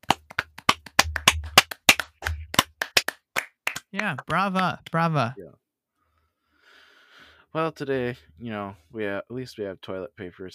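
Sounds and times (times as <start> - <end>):
small round of applause: 0.0 - 5.1
speech: 3.9 - 5.6, 7.5 - 10.5.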